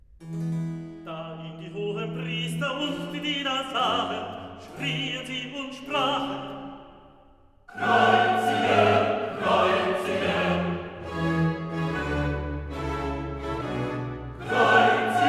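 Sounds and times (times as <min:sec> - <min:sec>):
recitative singing: 0:01.4 - 0:07.0, 0:07.7 - 0:15.2
choir singing: 0:04.7 - 0:05.2, 0:07.7 - 0:15.2.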